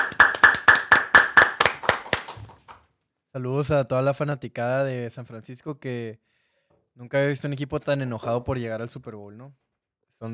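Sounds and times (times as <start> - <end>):
applause: 0.0 - 2.8
speech: 3.4 - 6.3, 7.0 - 9.6.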